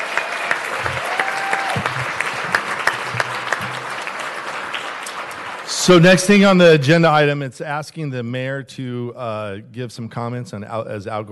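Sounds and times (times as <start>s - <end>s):
audience applause: 0.0s - 6.6s
speech: 5.8s - 11.3s.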